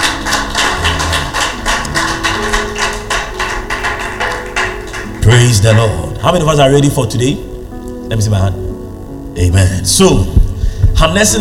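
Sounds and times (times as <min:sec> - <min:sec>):
audience clapping hands: 0:00.0 - 0:06.0
sustained low musical tones: 0:00.0 - 0:11.2
speech: 0:05.3 - 0:07.5, 0:08.1 - 0:08.6, 0:09.4 - 0:10.4, 0:11.0 - 0:11.4.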